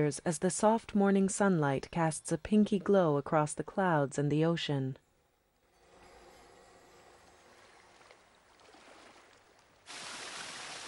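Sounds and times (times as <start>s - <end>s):
speech: 0.0s - 5.0s
wall of water from an overhang splashing down into an empty pool: 7.5s - 10.8s.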